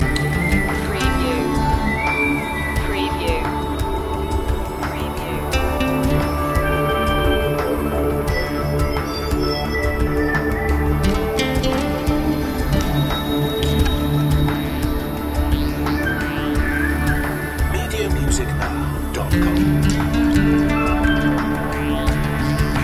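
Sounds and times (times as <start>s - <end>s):
rainforest ambience: 0.0s - 22.8s.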